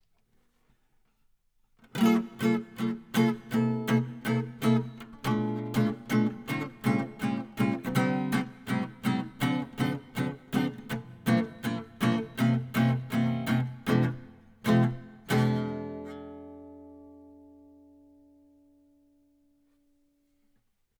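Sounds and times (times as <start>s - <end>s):
Höfner 456 archtop guitar comping: 1.8s - 16.6s.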